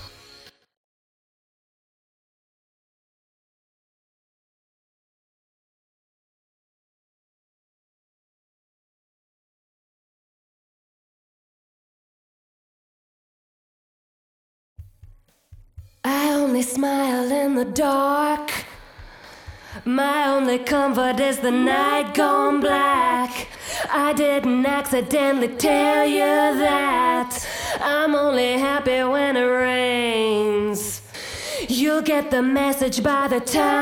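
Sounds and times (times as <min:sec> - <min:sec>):
person singing: 0:16.1 - 0:18.8, 0:19.8 - 0:33.8.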